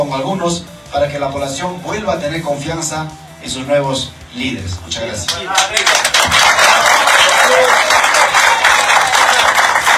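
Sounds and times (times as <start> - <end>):
speech: 0.1 - 6.6
audience applause: 5.5 - 9.9.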